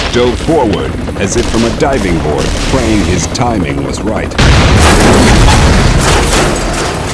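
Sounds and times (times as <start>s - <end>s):
speech: 0.1s - 6.1s
explosion blast: 4.4s - 7.0s.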